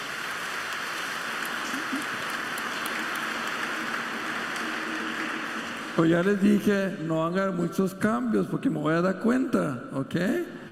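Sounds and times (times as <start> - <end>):
audience applause: 0.0 - 6.9
speech: 6.0 - 10.6.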